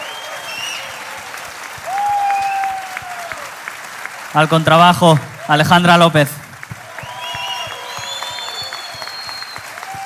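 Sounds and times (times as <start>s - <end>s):
audience applause: 0.0s - 10.0s
speech: 4.4s - 6.4s.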